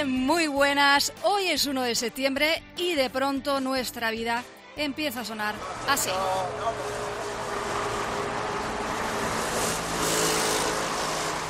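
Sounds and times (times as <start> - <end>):
speech: 0.0 - 7.0
city traffic, cars in morning rush: 5.2 - 11.4.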